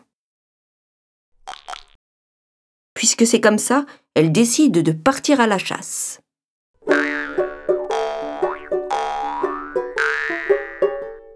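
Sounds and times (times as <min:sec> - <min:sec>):
speech: 0:03.0 - 0:06.3
quick plucked notes: 0:06.8 - 0:11.3
springy cartoon boings: 0:06.8 - 0:11.3.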